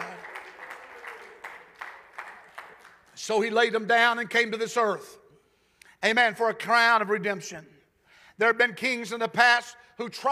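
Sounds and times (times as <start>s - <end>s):
audience clapping hands in a steady rhythm: 0.0s - 3.9s
speech: 3.2s - 5.2s, 6.0s - 7.7s, 8.4s - 10.2s.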